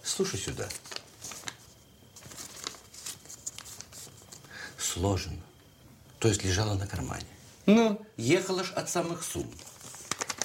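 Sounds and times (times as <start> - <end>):
low hiss: 0.0 - 10.4
speech: 0.2 - 0.9, 5.0 - 5.5, 6.2 - 9.7
dry paper crinkling and rustling: 0.2 - 4.5, 9.3 - 10.4.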